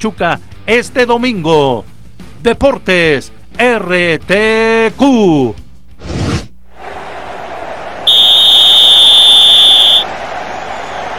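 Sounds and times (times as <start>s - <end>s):
speech: 0.0s - 5.6s
referee whistle ending first half: 8.1s - 10.1s.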